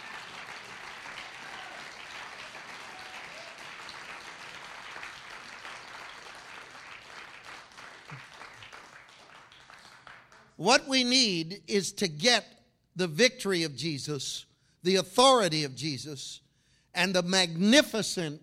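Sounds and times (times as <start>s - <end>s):
audience clapping and applause: 0.0s - 10.6s
speech: 10.6s - 16.4s, 17.0s - 18.4s.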